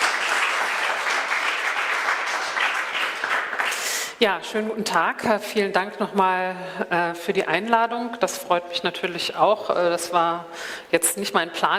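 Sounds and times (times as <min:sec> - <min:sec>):
audience applause: 0:00.0 - 0:04.0
speech: 0:04.2 - 0:11.7.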